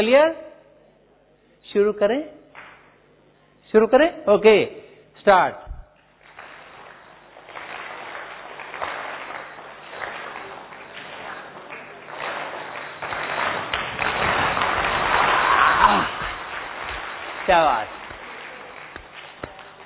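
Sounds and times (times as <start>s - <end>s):
speech: 0.0s - 0.5s, 1.7s - 2.4s, 3.7s - 5.6s, 17.5s - 18.0s
audience clapping: 6.0s - 19.8s.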